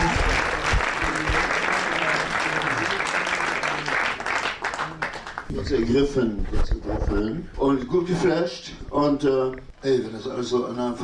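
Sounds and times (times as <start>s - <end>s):
audience applause: 0.0s - 5.5s
speech: 5.7s - 11.0s.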